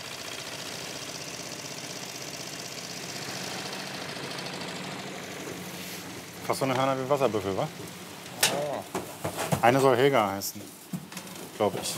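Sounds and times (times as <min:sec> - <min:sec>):
old ferry engine rumbling: 0:00.0 - 0:11.9
constant hiss: 0:05.5 - 0:11.9
speech: 0:06.5 - 0:08.0, 0:09.6 - 0:10.8, 0:11.6 - 0:11.9.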